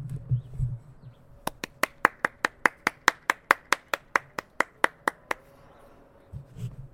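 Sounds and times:
person clapping: 1.4 - 5.4.

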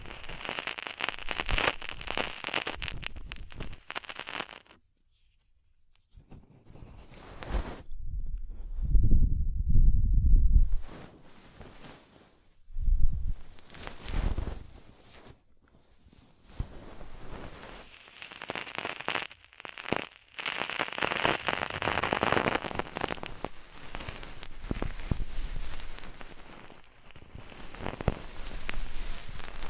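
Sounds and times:
deep ear cleaning rustles and scratches: 0.0 - 7.9, 10.8 - 12.6, 13.3 - 29.6
low thumping rumbles: 8.0 - 10.8.

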